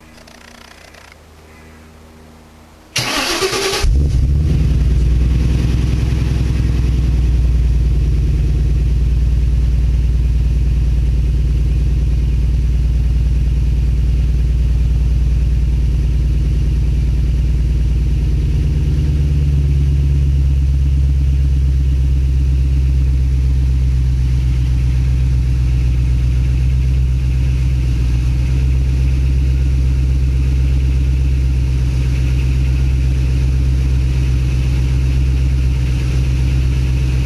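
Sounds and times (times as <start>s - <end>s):
MG ZT car exhaust with new pipes: 3.0s - 37.2s.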